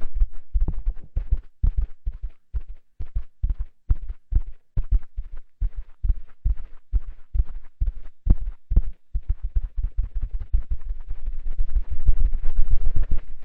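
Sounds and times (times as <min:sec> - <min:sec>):
cotton swab rubbing ear: 0:00.2 - 0:13.4.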